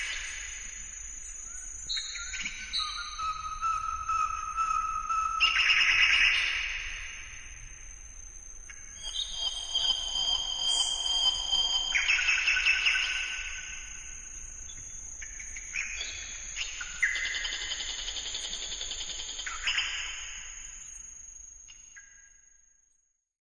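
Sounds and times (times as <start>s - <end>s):
bird song: 1.2s - 7.2s, 8.7s - 21.1s.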